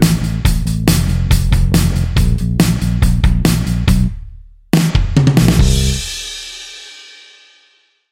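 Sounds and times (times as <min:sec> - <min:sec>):
drum and bass music: 0:00.0 - 0:06.4.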